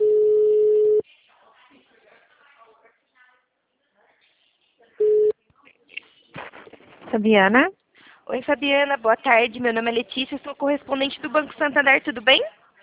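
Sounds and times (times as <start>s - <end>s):
telephone tones while a bank call is transferred: 0.0s - 1.0s, 5.0s - 5.3s
speech: 7.1s - 12.6s.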